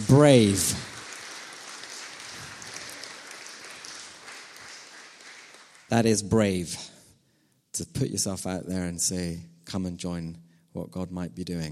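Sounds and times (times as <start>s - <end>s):
audience applause: 0.0s - 6.2s
speech: 0.1s - 0.8s, 5.9s - 6.9s, 7.8s - 11.7s.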